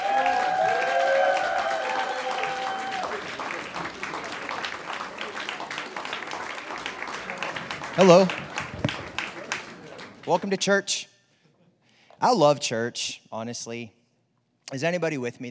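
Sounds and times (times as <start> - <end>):
whoops and cheers: 0.0 - 3.3
crowd applause: 0.0 - 10.7
speech: 8.0 - 8.4, 10.3 - 11.1, 12.2 - 14.0, 14.7 - 15.4.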